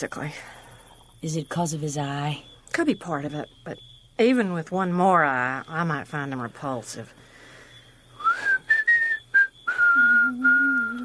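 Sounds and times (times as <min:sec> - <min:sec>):
speech: 0:00.0 - 0:00.6, 0:01.2 - 0:07.2
person whistling a tune: 0:08.2 - 0:11.0.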